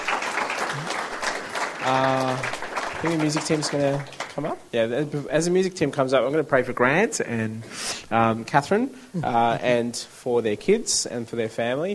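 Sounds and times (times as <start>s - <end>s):
audience applause: 0.0s - 4.6s
speech: 1.8s - 11.9s.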